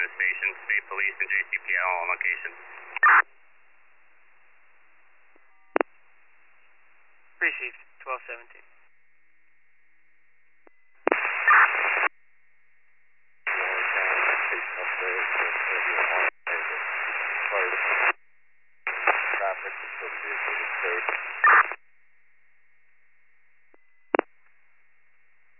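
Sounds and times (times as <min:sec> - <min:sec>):
garbled voice traces under radio hiss: 0:00.0 - 0:03.2, 0:13.5 - 0:18.2, 0:18.9 - 0:21.8
radio static: 0:00.0 - 0:03.3, 0:07.4 - 0:08.7, 0:11.0 - 0:12.1, 0:13.5 - 0:18.2, 0:18.9 - 0:21.8
speech: 0:01.0 - 0:03.2, 0:07.6 - 0:08.7.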